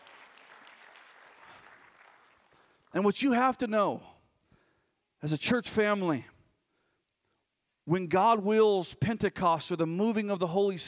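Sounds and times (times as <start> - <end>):
church congregation applauding in a worship service: 0.0 - 3.0
speech: 2.9 - 4.1, 5.2 - 6.3, 7.9 - 10.8.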